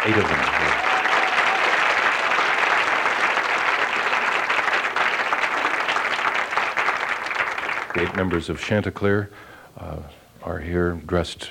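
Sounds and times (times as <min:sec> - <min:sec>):
speech: 0:00.0 - 0:00.7, 0:08.0 - 0:11.4
audience clapping to welcome an eight-member vocal ensemble: 0:00.0 - 0:08.7.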